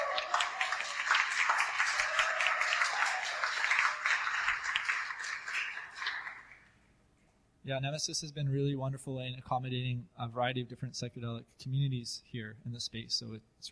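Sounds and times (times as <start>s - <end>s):
group applause: 0.0s - 6.7s
speech: 7.7s - 13.7s.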